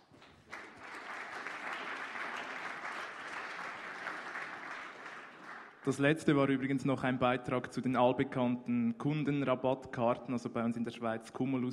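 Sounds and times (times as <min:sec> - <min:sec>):
applause: 0:00.0 - 0:06.2
speech: 0:05.8 - 0:11.7.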